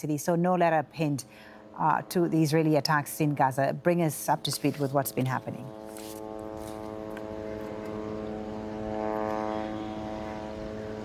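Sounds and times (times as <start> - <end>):
speech: 0.0 - 6.2
military drones buzzing in the sky: 1.2 - 11.0.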